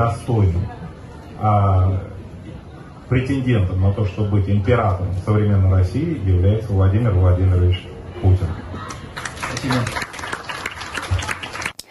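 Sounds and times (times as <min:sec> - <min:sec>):
speech: 0:00.0 - 0:00.8, 0:01.4 - 0:02.1, 0:03.1 - 0:08.6, 0:09.6 - 0:10.0
crowd applauding: 0:08.8 - 0:11.8.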